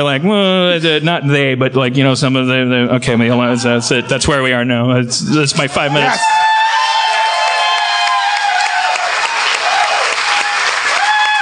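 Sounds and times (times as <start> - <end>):
speech: 0.0 - 6.4
audience applause: 6.0 - 11.4.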